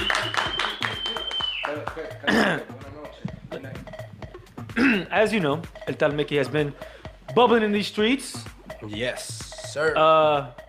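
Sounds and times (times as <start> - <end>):
clapping to welcome a guest: 0.0 - 2.2
speech: 1.8 - 3.9, 4.8 - 10.6.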